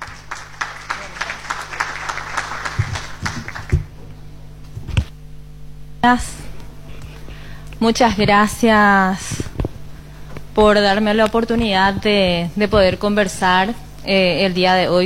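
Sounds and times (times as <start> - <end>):
audience applause: 0.0 - 4.0
speech: 6.0 - 6.4, 7.8 - 9.4, 10.6 - 15.0.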